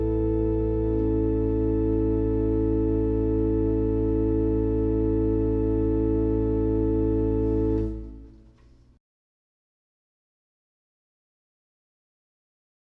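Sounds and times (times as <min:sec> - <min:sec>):
organ: 0:00.0 - 0:08.7.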